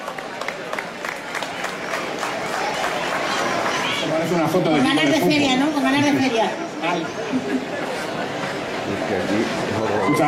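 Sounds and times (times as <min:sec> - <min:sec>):
audience applause: 0:00.0 - 0:04.5
crowd murmuring and cheering faintly: 0:00.0 - 0:10.2
speech: 0:04.2 - 0:08.0, 0:08.9 - 0:10.2.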